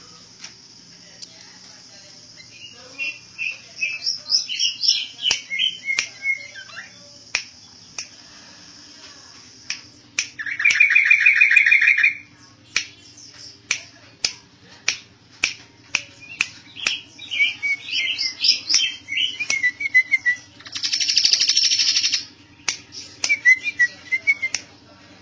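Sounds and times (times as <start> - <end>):
bird singing trill, chirps and whistles: 2.4 - 8.0, 9.8 - 13.8, 15.8 - 24.6.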